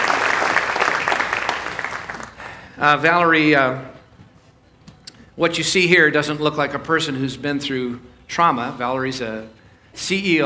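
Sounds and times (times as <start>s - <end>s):
church audience applause welcoming a speaker to the stage: 0.0s - 2.7s
speech: 2.8s - 4.0s, 5.4s - 10.4s.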